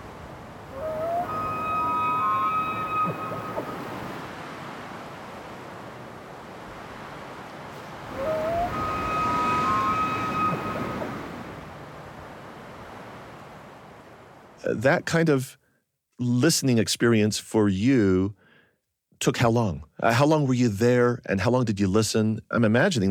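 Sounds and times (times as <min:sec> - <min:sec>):
ridge-top wind: 0:00.0 - 0:18.4, 0:19.2 - 0:23.0
bugling elk: 0:00.6 - 0:04.3, 0:07.8 - 0:12.2
speech: 0:14.7 - 0:15.6, 0:16.2 - 0:18.4, 0:19.2 - 0:23.0.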